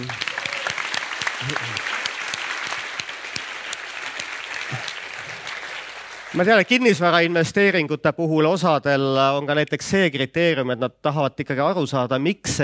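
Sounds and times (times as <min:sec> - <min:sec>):
applause: 0:00.0 - 0:07.6
speech: 0:01.4 - 0:02.0, 0:06.3 - 0:12.6.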